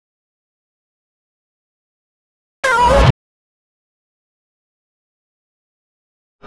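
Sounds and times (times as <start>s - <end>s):
meow at 128 bpm: 2.6s - 3.1s.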